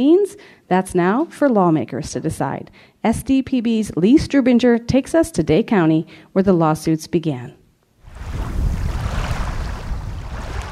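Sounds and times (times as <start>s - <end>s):
speech: 0.0s - 7.6s
slight breeze rippling water of Long Lake: 8.0s - 10.7s.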